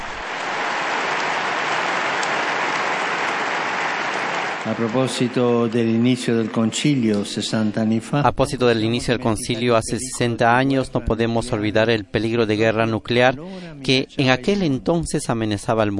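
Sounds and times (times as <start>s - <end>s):
audience applause: 0.0s - 7.5s
speech: 4.7s - 15.9s.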